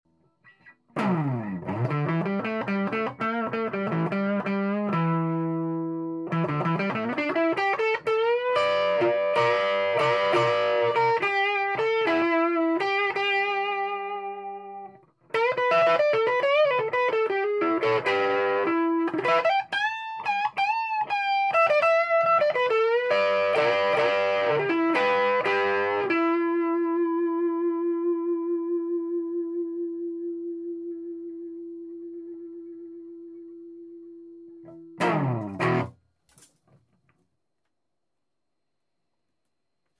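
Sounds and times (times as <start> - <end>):
Gibson ES-335 electric guitar: 0.5 - 36.0.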